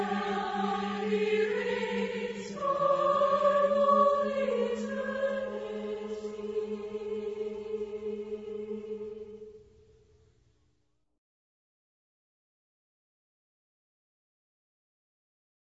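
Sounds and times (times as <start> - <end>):
a cappella hymn: 0.0 - 9.7.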